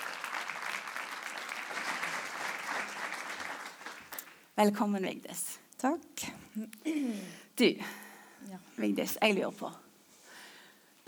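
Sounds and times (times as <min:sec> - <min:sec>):
audience applause: 0:00.0 - 0:04.4
speech: 0:04.6 - 0:09.8.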